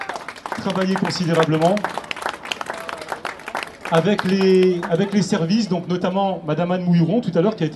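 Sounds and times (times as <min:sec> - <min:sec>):
audience clapping at a municipal meeting: 0:00.0 - 0:05.6
speech: 0:00.6 - 0:02.1, 0:03.9 - 0:07.7.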